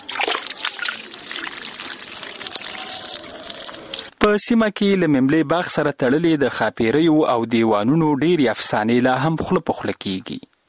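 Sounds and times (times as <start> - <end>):
water trickling and splashing in garden pools and fountains: 0.0 - 4.1
speech: 4.2 - 10.5.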